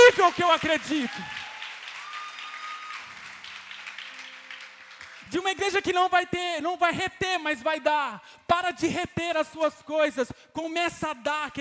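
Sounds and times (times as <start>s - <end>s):
church audience applauding: 0.0s - 5.7s
speech: 0.2s - 1.4s, 5.3s - 11.6s.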